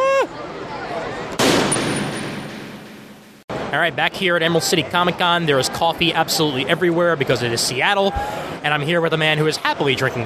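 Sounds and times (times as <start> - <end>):
blaster gunfire from costumed 501st Legion troopers at Emerald City Comic Con: 1.4 - 3.4
speech: 3.7 - 10.2.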